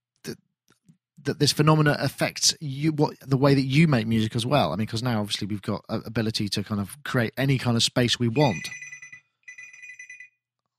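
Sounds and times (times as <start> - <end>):
speech: 1.3 - 8.9
mobile phone ringing: 8.4 - 10.4.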